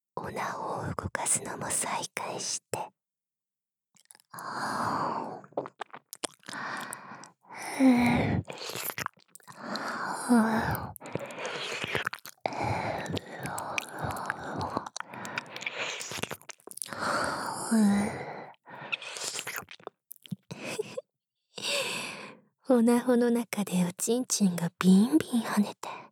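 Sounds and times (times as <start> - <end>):
speech: 0.3 - 3.0, 4.4 - 5.7, 7.8 - 8.9, 10.3 - 10.8, 22.8 - 26.0
wet licking and mouth sounds on the ear: 4.0 - 4.6, 5.4 - 7.4, 8.1 - 17.5, 18.7 - 21.0
soft breathy sighs: 4.4 - 5.4, 6.5 - 8.7, 9.5 - 16.0, 16.9 - 19.1, 21.6 - 22.4.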